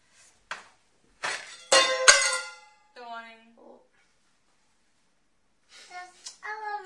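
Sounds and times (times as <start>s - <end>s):
pliers thrown down onto the floor: 1.2s - 2.6s.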